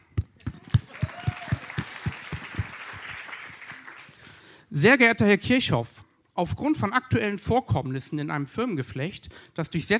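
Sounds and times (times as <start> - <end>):
audience applause: 0.6 - 4.2
speech: 4.8 - 9.9.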